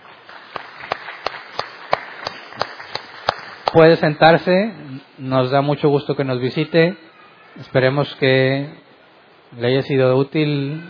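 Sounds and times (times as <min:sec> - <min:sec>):
applause: 0:00.0 - 0:04.1
speech: 0:03.7 - 0:07.0, 0:07.6 - 0:08.8, 0:09.5 - 0:10.8.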